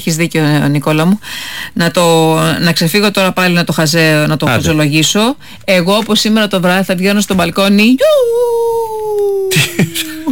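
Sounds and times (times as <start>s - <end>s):
speech: 0.0s - 10.3s
person imitating a wolf howl: 4.5s - 4.8s.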